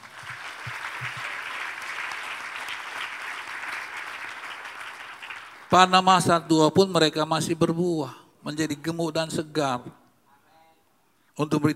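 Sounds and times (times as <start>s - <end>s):
crowd applause in a reverberant room: 0.0s - 5.7s
speech: 5.7s - 10.0s, 11.4s - 11.7s.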